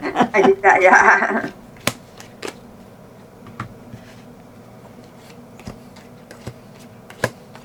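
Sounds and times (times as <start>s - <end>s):
laughter: 0.0s - 1.6s
speech: 0.4s - 1.6s
playing cards being laid out on a surface: 1.8s - 2.6s, 5.6s - 7.6s.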